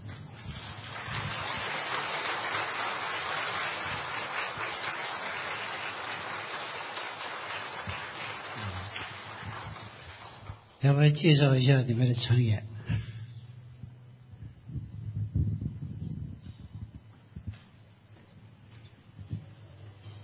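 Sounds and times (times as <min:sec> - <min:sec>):
standing audience applause: 0:00.0 - 0:10.7
speech: 0:10.8 - 0:12.7.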